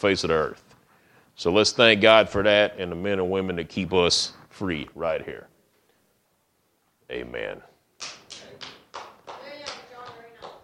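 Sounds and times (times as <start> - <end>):
speech: 0.0 - 0.7, 1.4 - 5.5, 7.1 - 8.2
applause: 8.0 - 10.6.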